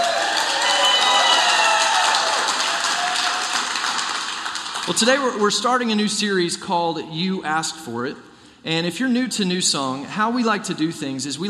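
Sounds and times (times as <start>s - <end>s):
church congregation applauding to welcome listeners: 0.0s - 5.4s
speech: 4.9s - 11.4s.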